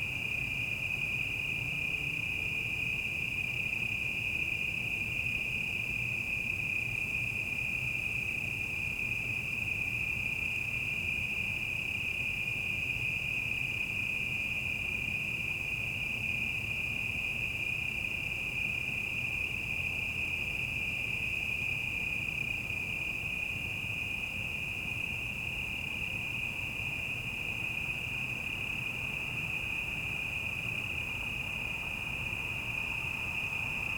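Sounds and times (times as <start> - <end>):
cicadas on a city night: 0.0 - 33.9.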